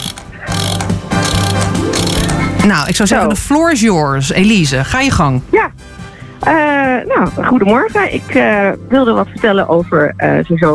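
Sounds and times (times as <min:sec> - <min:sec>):
alarm clock being set, ratcheting whir: 0:00.0 - 0:02.6
speech: 0:02.6 - 0:05.7, 0:06.4 - 0:10.7.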